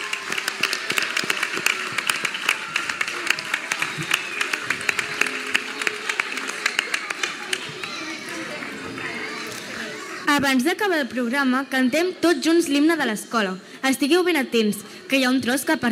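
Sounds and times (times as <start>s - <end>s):
audience applause: 0.0s - 10.2s
speech: 10.4s - 15.9s.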